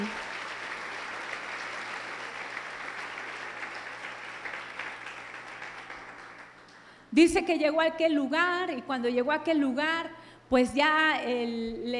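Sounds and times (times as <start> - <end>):
audience applause: 0.0 - 6.9
speech: 7.1 - 11.9.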